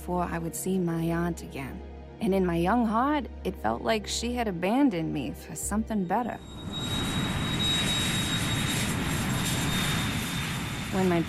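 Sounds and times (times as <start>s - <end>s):
speech: 0.0s - 7.0s, 11.0s - 11.2s
airplane flying overhead: 6.4s - 11.2s.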